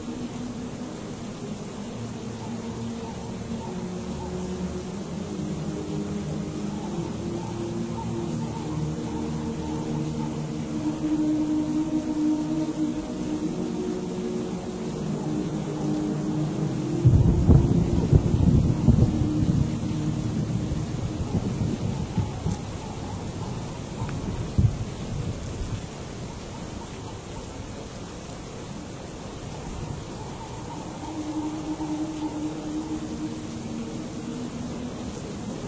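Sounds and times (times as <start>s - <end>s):
rain and wind at a monastery: 0.0s - 35.6s
heavy thunder roll: 17.0s - 19.8s.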